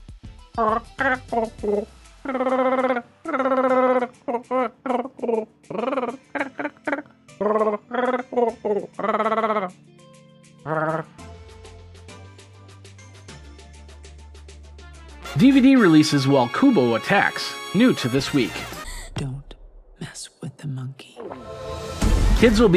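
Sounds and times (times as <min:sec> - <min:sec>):
speech: 0:00.6 - 0:06.5, 0:07.4 - 0:11.2, 0:15.4 - 0:19.3, 0:22.4 - 0:22.7
voice imitating Wookiee growls: 0:00.6 - 0:09.8, 0:10.6 - 0:11.4.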